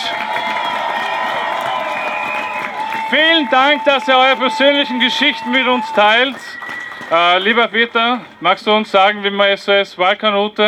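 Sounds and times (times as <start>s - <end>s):
whistles and whoops: 0.0s - 7.6s
crowd cheering and shouting: 0.0s - 9.4s
speech: 3.1s - 10.6s.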